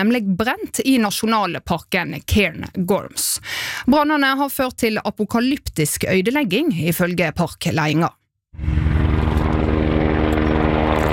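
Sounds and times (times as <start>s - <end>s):
speech: 0.0s - 8.8s
firefighting helicopter flying over Cairngorms National Park: 8.6s - 11.1s.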